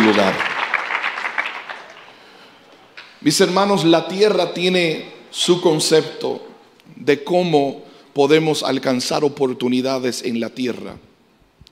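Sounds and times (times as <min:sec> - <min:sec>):
audience applause: 0:00.0 - 0:02.5
speech: 0:00.1 - 0:00.5, 0:03.2 - 0:11.1.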